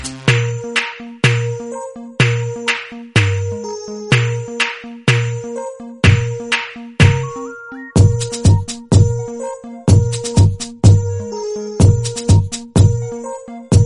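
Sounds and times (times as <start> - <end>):
instrumental ringtone: 0.4 - 13.8.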